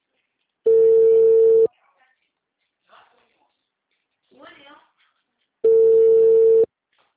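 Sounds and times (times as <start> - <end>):
telephone ringback tone of an outgoing call: 0.7 - 1.7, 5.7 - 6.7.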